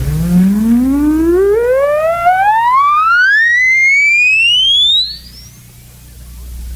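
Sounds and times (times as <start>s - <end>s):
oscillator test tone rising in pitch: 0.0s - 5.7s.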